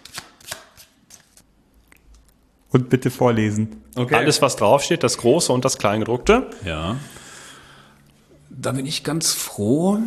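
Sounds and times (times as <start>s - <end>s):
deck of cards shuffled hard: 0.0s - 1.4s
speech: 2.7s - 7.2s, 8.6s - 10.0s.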